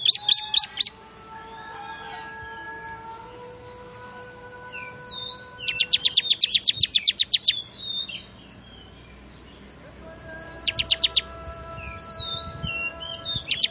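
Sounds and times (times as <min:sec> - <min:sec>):
bar-winged prinia chipping: 0:00.0 - 0:01.0, 0:04.8 - 0:13.7
faint bird whistles: 0:05.6 - 0:09.0, 0:10.6 - 0:11.3, 0:12.1 - 0:13.7.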